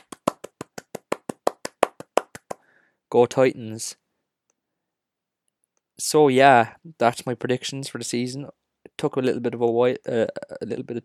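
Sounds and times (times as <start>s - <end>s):
applause: 0.0s - 2.6s
speech: 3.1s - 4.0s, 6.0s - 11.0s.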